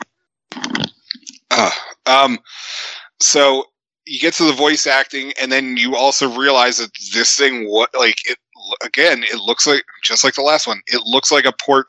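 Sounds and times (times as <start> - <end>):
cough: 1.5 - 2.0
speech: 1.6 - 11.8.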